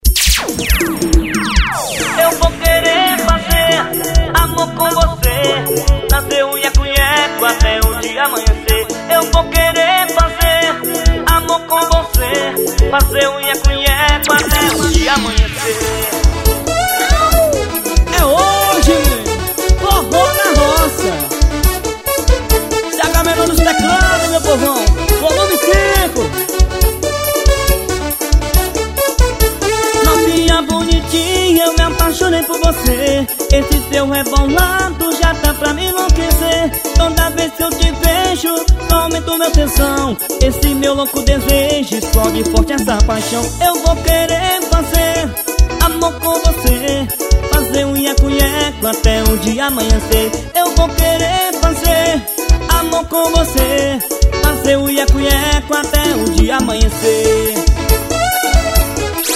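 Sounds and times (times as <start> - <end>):
live keyboards: 0.1 - 59.3.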